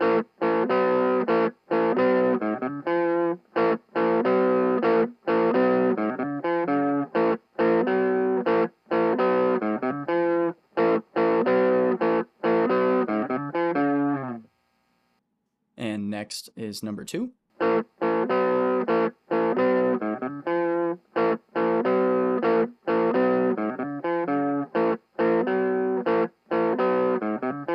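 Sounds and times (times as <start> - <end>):
electric guitar played through a TS-808 overdrive pedal: 0.0 - 14.6, 17.6 - 27.7
speech: 16.3 - 17.4.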